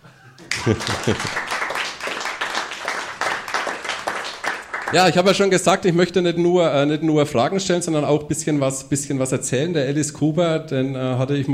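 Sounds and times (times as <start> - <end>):
person laughing: 0.0 - 1.5
speech: 0.4 - 1.5, 4.9 - 11.5
applause: 0.4 - 5.4.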